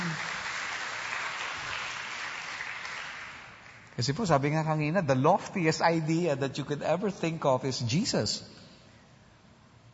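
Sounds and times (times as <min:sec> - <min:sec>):
church congregation clapping: 0:00.0 - 0:04.2
speech: 0:04.0 - 0:08.6.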